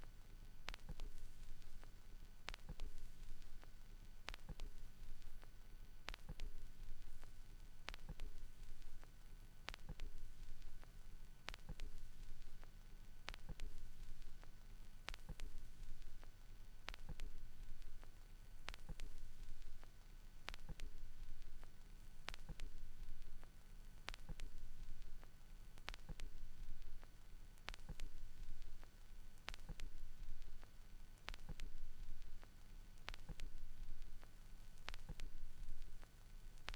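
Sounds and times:
vinyl record noise: 0.0 - 36.7.

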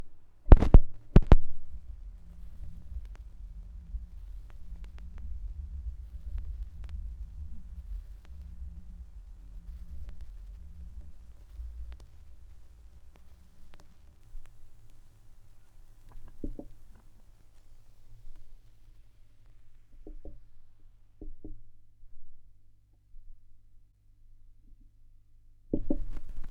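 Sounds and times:
vinyl record noise: 0.4 - 19.9, 26.0 - 26.4.

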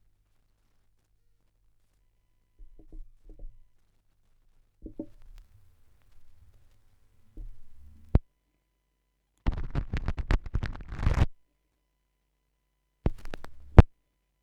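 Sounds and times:
vinyl record noise: 0.0 - 2.0, 3.7 - 8.2, 9.4 - 11.4, 13.1 - 13.9.

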